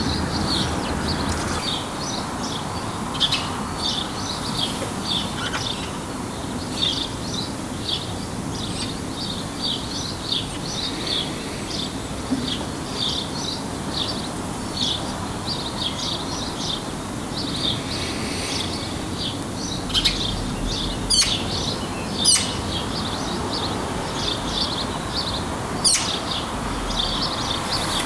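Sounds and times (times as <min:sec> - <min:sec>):
birds chirping: 0:00.0 - 0:28.0
cars: 0:00.0 - 0:28.0.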